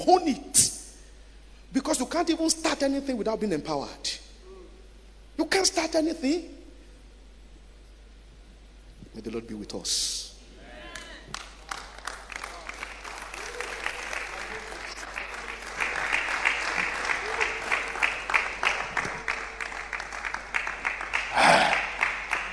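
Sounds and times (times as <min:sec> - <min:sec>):
speech: 0:00.0 - 0:00.7, 0:01.7 - 0:04.2, 0:05.4 - 0:06.6, 0:09.2 - 0:10.3
crowd cheering: 0:10.7 - 0:22.5
audience clapping: 0:10.9 - 0:22.5.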